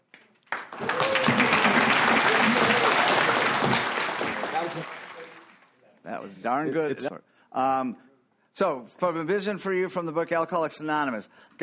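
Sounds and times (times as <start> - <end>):
audience applause: 0.4 - 5.7
speech: 6.4 - 11.6.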